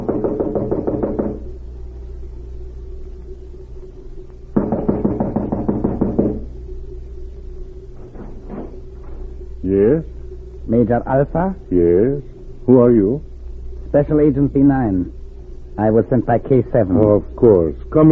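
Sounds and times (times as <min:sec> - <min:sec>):
knocking on a small cottage door: 0:00.0 - 0:01.5, 0:04.6 - 0:06.5
speech: 0:10.9 - 0:13.3, 0:13.9 - 0:15.2, 0:15.8 - 0:18.1.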